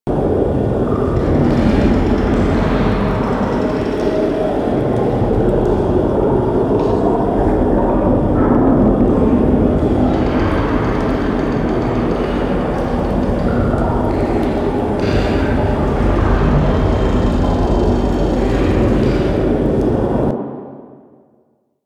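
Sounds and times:
water in a forest interior tunnel: 0:00.1 - 0:20.5.

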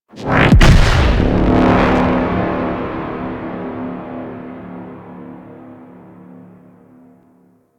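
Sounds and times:
dropship warp out boom: 0:00.2 - 0:05.2.

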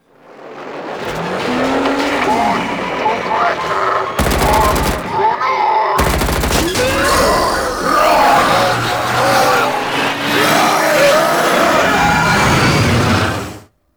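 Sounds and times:
ship engines: 0:00.0 - 0:13.7.

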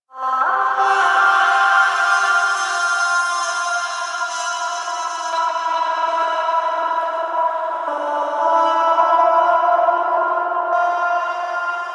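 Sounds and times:
music: 0:00.0 - 0:11.9.

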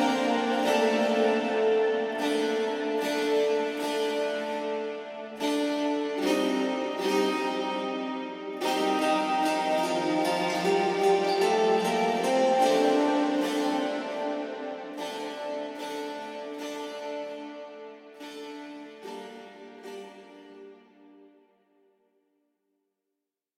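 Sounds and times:
ambient music cue: 0:00.0 - 0:17.9.

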